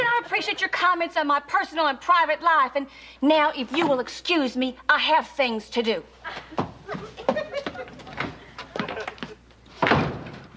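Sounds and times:
speech: 0.4s - 7.2s
laughter: 6.3s - 9.4s
door slamming shut: 9.8s - 10.5s.

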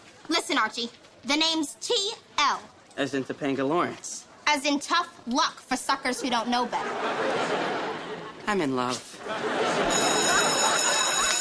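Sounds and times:
speech: 0.3s - 7.8s, 8.5s - 10.0s
laughter: 6.1s - 8.5s, 9.1s - 11.3s
school bell ringing: 9.7s - 11.3s.

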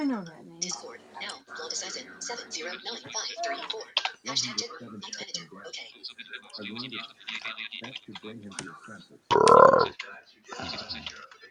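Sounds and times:
speech: 0.1s - 11.4s
loud burp: 9.3s - 9.9s
rough vocal sound: 9.3s - 10.0s.

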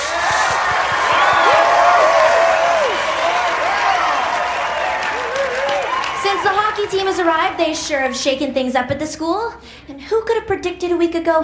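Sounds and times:
school assembly crowd applauding: 0.0s - 8.2s
voices whooping and cheering: 0.0s - 8.3s
speech: 6.9s - 11.4s.

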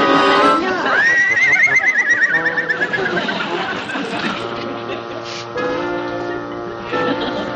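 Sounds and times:
pony whinnying: 0.0s - 4.4s
laughter: 0.0s - 7.5s.

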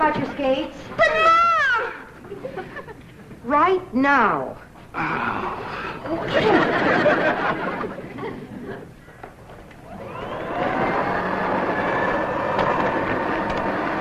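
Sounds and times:
speech: 0.1s - 1.3s, 3.4s - 8.0s
laughter: 2.2s - 3.2s, 6.0s - 9.0s
old vacuum cleaner running: 9.8s - 13.9s.

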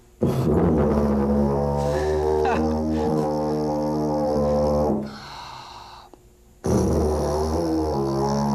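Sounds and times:
tuba played by buzzing lips playing deep sustained notes: 0.0s - 5.2s, 6.6s - 8.5s.

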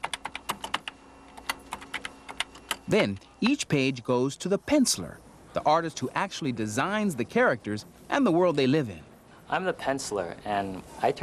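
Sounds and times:
typing a story on a computer keyboard: 0.0s - 3.6s
speech: 2.9s - 11.2s.

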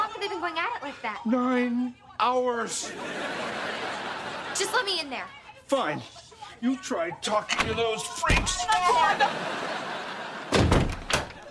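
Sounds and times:
speech: 0.4s - 10.0s
laughter: 2.8s - 5.1s, 8.2s - 11.4s
door being pushed shut: 7.5s - 9.0s, 10.5s - 11.4s.

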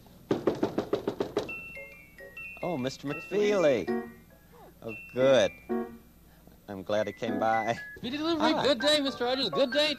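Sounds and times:
knocking on a front door: 0.3s - 1.6s
speech: 2.6s - 4.2s, 4.8s - 5.7s, 6.7s - 9.9s.

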